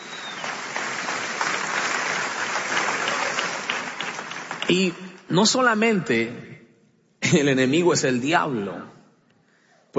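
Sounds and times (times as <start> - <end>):
audience applause: 0.0 - 5.1
speech: 4.7 - 6.5, 7.3 - 8.9.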